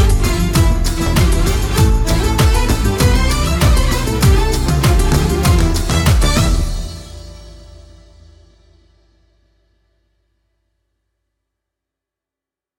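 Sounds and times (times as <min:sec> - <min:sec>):
Oriental string ensemble playing: 0:00.0 - 0:07.6.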